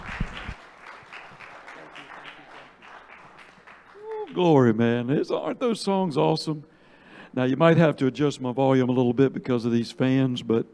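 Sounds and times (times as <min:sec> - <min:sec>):
audience applause welcoming a preacher to the stage: 0:00.0 - 0:04.5
speech: 0:04.4 - 0:06.7, 0:07.4 - 0:10.7.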